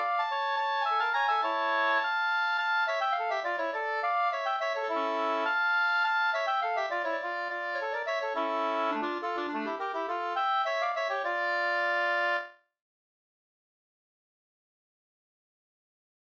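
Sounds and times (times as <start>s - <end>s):
two-part polska dance tune: 0.0s - 12.5s.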